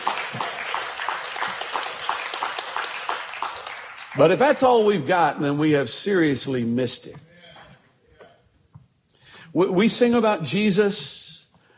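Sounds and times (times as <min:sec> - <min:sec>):
hand clapping: 0:00.0 - 0:04.4
speech: 0:04.2 - 0:07.3, 0:09.6 - 0:11.2.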